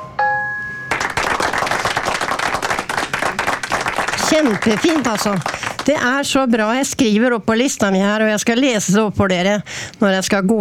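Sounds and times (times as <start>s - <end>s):
applause sound effect: 0.9s - 6.2s
speech: 4.3s - 10.6s.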